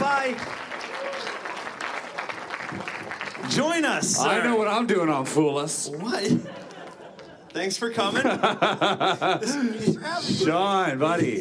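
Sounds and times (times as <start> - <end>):
audience applause: 0.0 - 4.6
speech: 3.5 - 6.7, 7.6 - 11.4
laughter: 6.1 - 10.6.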